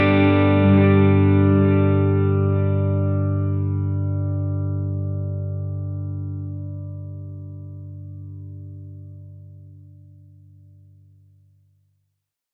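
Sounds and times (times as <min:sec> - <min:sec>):
quarter note delay effect: 0:00.0 - 0:07.4.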